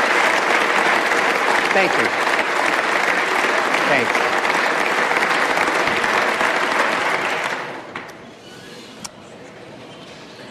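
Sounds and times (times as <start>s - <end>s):
audience applause: 0.0s - 8.0s
speech: 1.8s - 2.3s, 3.9s - 4.4s.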